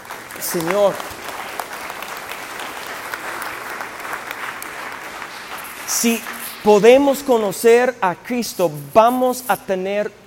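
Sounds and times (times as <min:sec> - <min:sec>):
audience applause: 0:00.0 - 0:06.8
speech: 0:00.4 - 0:01.2, 0:05.9 - 0:10.2.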